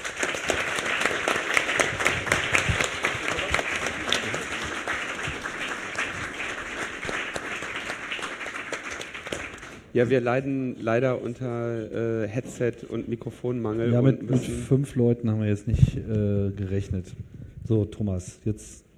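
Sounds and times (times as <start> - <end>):
audience applause: 0.0 - 9.9
speech: 10.0 - 18.9.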